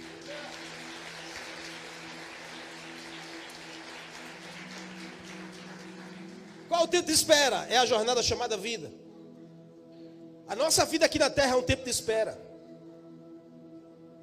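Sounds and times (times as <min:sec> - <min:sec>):
audience applauding: 0:00.0 - 0:07.2
speech: 0:06.8 - 0:09.0, 0:10.5 - 0:12.5.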